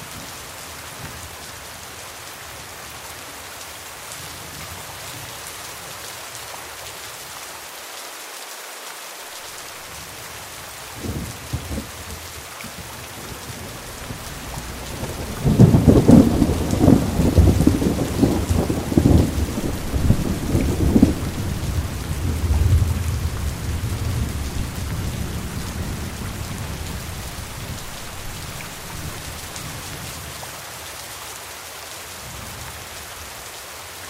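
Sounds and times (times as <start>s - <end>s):
rain falling on a roof at night: 0.0s - 34.0s
thunder: 13.5s - 29.8s.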